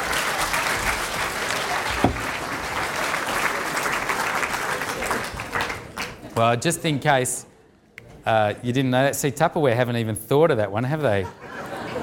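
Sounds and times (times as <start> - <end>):
audience round of applause: 0.0 - 6.3
speech: 6.4 - 7.5, 8.2 - 11.5
laughter: 11.1 - 12.0.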